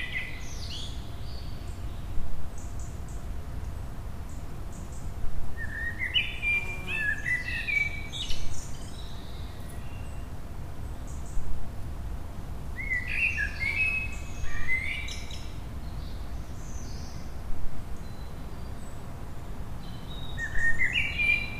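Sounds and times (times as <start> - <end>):
mixed deciduous forest ambience: 0.0 - 21.5.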